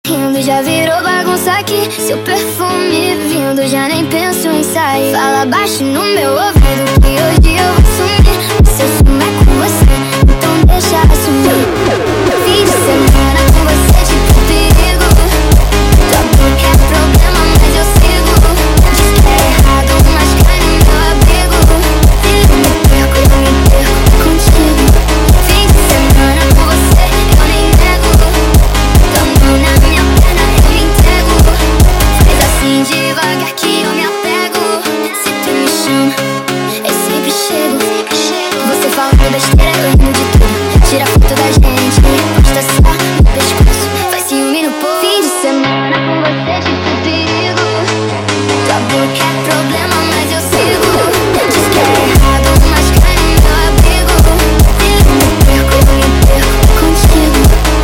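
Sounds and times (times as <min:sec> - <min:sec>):
sped up montagem music: 0:00.1 - 0:57.8.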